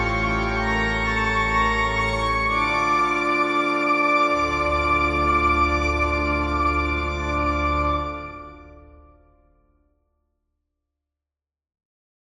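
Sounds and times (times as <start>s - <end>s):
pipe organ: 0.0s - 9.3s.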